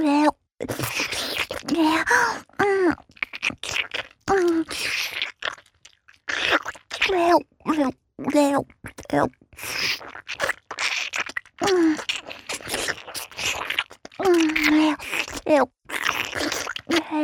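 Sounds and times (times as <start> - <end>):
wet sucking sounds: 0.6 - 7.3, 8.3 - 17.2
wet licking: 3.0 - 7.2, 8.8 - 17.2.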